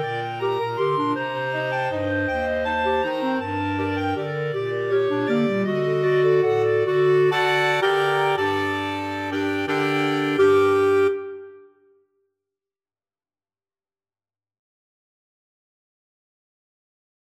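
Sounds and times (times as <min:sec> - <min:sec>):
clarinet choir of six clarinets: 0:00.0 - 0:11.8.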